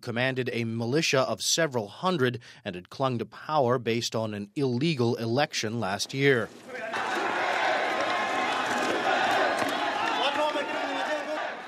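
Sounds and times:
speech: 0.0s - 7.1s
crowd cheering in the streets of Mutsamudu: 6.6s - 11.6s.

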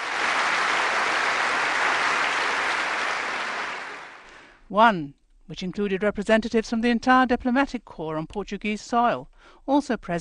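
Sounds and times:
auditorium audience cheering and applause: 0.0s - 4.5s
speech: 4.7s - 10.1s.

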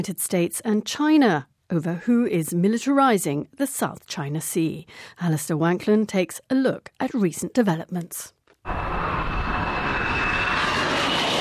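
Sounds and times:
speech: 0.0s - 8.8s
fighter jets flying overhead: 8.7s - 11.3s.

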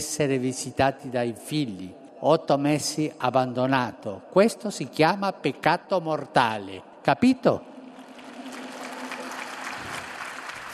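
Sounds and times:
speech: 0.0s - 7.7s
crowd applauding Pope Francis: 7.8s - 10.7s.

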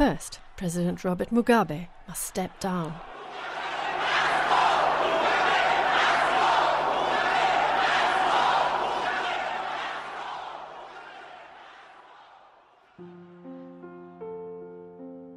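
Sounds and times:
speech: 0.0s - 3.6s
crowd jeering and chanting: 1.8s - 13.0s.

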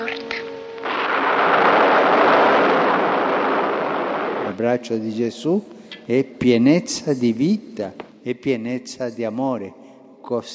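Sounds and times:
thunder: 0.7s - 4.8s
speech: 4.6s - 10.5s.

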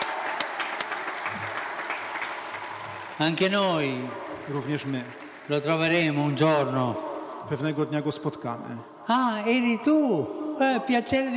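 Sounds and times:
crowd applauding: 0.0s - 7.8s
speech: 3.2s - 11.3s.

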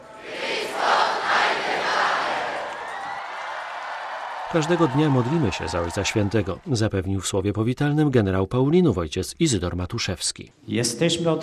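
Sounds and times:
large crowd cheering an ovation for Pope Benedict XVI at Jasna Góra: 0.3s - 7.0s
speech: 4.5s - 11.4s.

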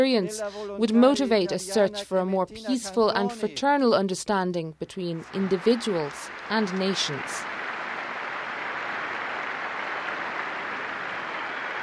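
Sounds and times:
speech: 0.0s - 7.6s
crowd applause in a square: 5.2s - 11.8s.

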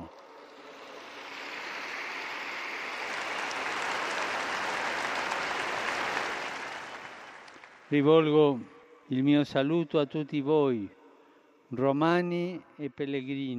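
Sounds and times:
crowd applause: 0.0s - 8.0s
speech: 7.9s - 11.0s, 11.7s - 13.5s.

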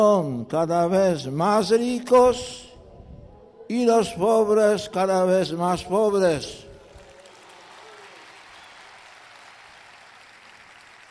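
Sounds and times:
speech: 0.0s - 2.7s, 3.7s - 6.6s
audience applause: 6.8s - 11.0s.

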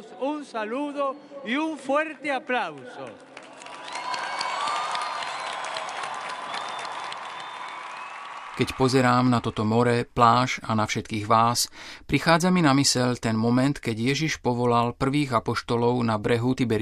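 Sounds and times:
speech: 0.2s - 3.3s, 8.6s - 16.8s
large crowd applauding: 2.6s - 10.0s.

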